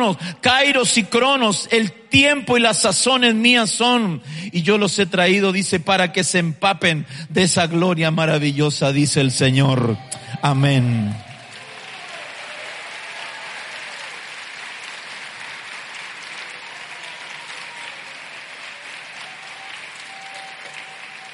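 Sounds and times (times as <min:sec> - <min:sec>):
speech: 0:00.0 - 0:11.3
audience applauding: 0:09.8 - 0:21.3.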